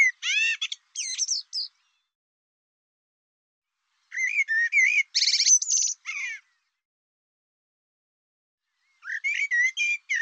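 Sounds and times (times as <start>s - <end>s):
bird song: 0.0s - 2.2s, 3.8s - 6.8s, 8.6s - 10.2s.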